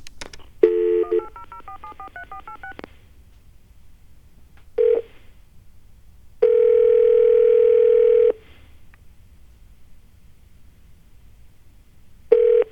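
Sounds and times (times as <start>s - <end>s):
telephone tones of an unavailable number: 0.6s - 2.8s, 6.4s - 8.3s, 12.3s - 12.7s
touch-tone telephone keypad beeps dialing a 1-800 number: 0.6s - 2.8s.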